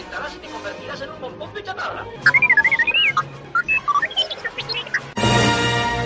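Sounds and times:
speech: 0.3s - 2.6s
robot whistles and beeps: 2.2s - 5.2s.

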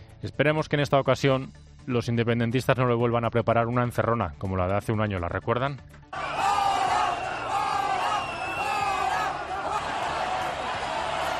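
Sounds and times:
speech: 0.2s - 6.4s
crowd chanting: 6.2s - 11.3s.

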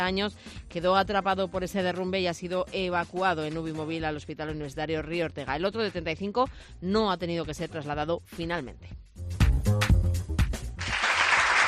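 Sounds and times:
speech: 0.0s - 10.4s
audience applause: 10.8s - 11.6s.

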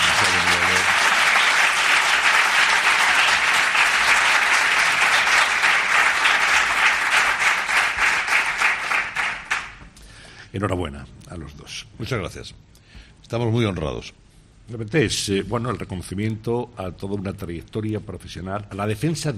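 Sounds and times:
audience applause for a radio journalist being honoured with an award: 0.0s - 9.8s
speech: 10.6s - 19.3s.

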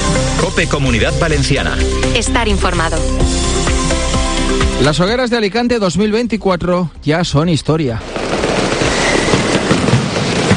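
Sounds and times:
speech: 0.5s - 3.7s, 4.5s - 8.2s
fireworks from a large palmera by Pirotecnia Fernández at Hogueras de Alicante: 8.0s - 10.5s.

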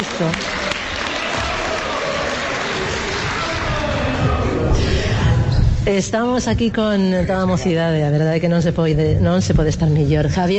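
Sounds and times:
audience applause: 0.0s - 5.0s
speech: 0.2s - 0.6s, 5.9s - 10.5s.

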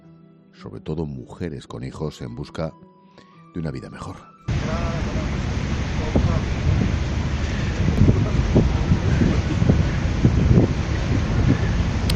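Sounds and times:
speech: 0.6s - 2.9s, 3.6s - 7.9s
churning river water: 4.5s - 12.1s
continuous low rumble: 4.5s - 12.1s
wind roaring on a river ferry: 4.5s - 12.1s.

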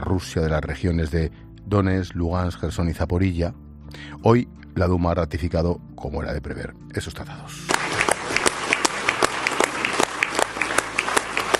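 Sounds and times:
speech: 0.1s - 8.0s
Russian Chamber of Deputies applauding: 7.7s - 11.5s.

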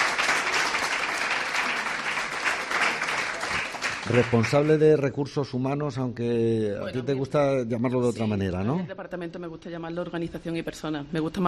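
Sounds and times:
audience applause welcoming a guest: 0.0s - 4.9s
speech: 4.1s - 11.4s.

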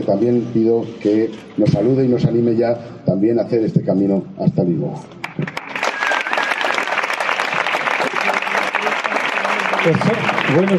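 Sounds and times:
speech: 0.1s - 5.6s, 9.8s - 10.7s
crowd applauding: 5.2s - 10.7s.

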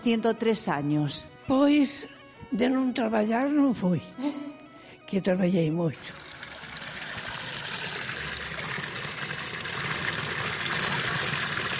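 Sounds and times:
speech: 0.0s - 6.2s
water flowing from the Asburgas spring fountain in Orense: 6.0s - 11.7s.

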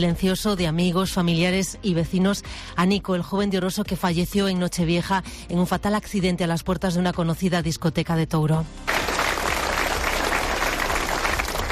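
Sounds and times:
speech: 0.0s - 8.9s
applause after a silent tribute: 8.9s - 11.7s.

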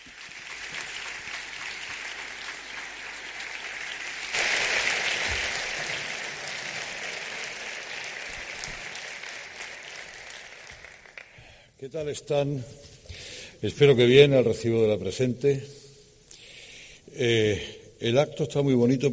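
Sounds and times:
audience applause: 0.0s - 11.5s
speech: 11.8s - 12.9s, 13.6s - 15.8s, 17.2s - 19.1s.

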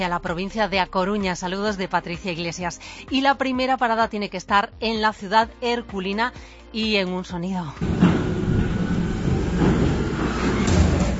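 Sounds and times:
speech: 0.0s - 8.2s
garbage truck: 7.8s - 11.1s.

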